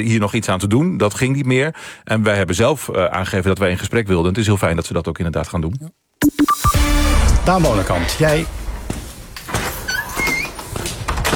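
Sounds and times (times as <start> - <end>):
speech: 0.0 - 6.7, 7.4 - 8.6
door opening with squeaky hinge: 9.6 - 11.3.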